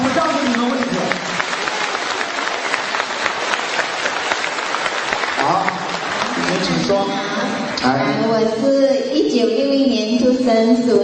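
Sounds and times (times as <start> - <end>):
audience applause: 0.0 - 7.8
speech: 6.9 - 11.0.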